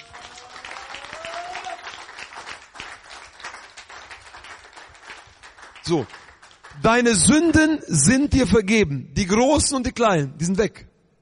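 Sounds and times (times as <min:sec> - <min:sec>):
faint cheer: 0:00.0 - 0:02.2
audience clapping: 0:00.0 - 0:07.4
speech: 0:05.9 - 0:06.2, 0:06.8 - 0:10.9.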